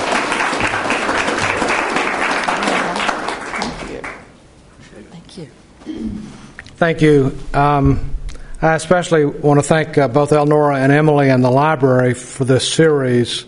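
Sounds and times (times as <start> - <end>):
audience applause: 0.0 - 4.3
speech: 6.8 - 13.4.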